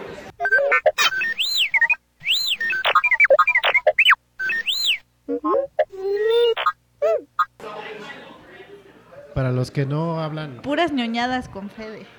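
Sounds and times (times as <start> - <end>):
astromech droid beeping and whistling speech: 0.4 - 7.5
speech: 9.5 - 12.1.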